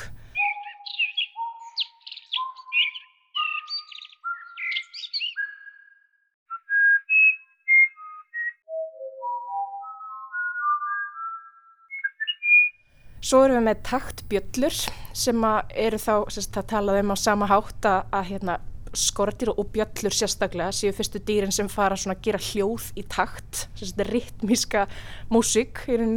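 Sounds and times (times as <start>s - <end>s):
birdsong elements played on a tone egg as clear whistled tones: 0.0s - 12.8s
brighter chirpy trills on a tone egg: 0.0s - 14.4s
speech: 13.3s - 26.1s.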